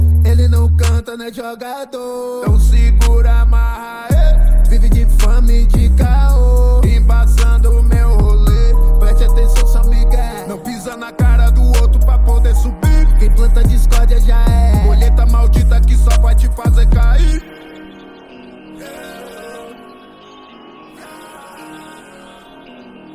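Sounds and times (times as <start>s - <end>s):
deep bass: 0.0s - 1.0s, 2.5s - 10.3s, 11.2s - 17.4s.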